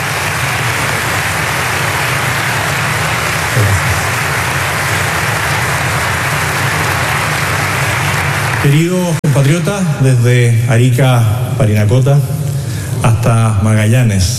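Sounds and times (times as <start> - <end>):
audience applause: 0.0 - 9.5
speech: 8.6 - 12.4, 13.0 - 14.3.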